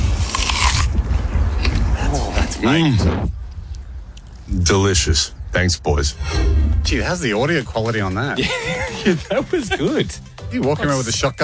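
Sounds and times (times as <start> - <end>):
biting and chewing a Honeycrisp apple: 0.0 - 2.0
speech: 2.6 - 3.4, 4.5 - 11.4
laughter: 8.4 - 10.2.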